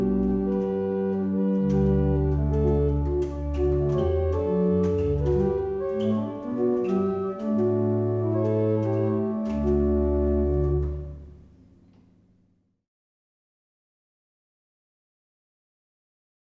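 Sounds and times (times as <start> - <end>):
barrel organs playing a hymn: 0.0 - 11.5.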